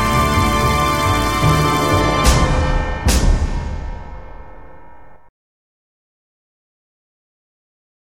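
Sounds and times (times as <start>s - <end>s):
fanfare: 0.0s - 5.1s.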